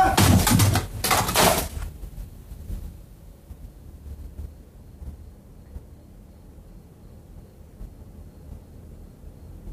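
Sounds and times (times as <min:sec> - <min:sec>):
typewriter hurled against a door: 0:00.2 - 0:01.8.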